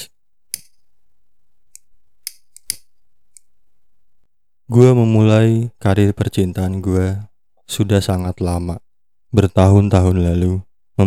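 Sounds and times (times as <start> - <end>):
lighter clicks lighting a cigarette: 0.5 - 0.8, 1.8 - 3.5
speech: 4.7 - 11.0.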